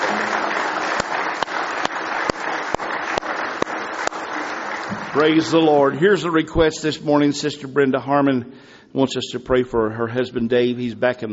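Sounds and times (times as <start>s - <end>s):
audience clapping hands in praise: 0.0s - 6.7s
speech: 5.2s - 11.3s.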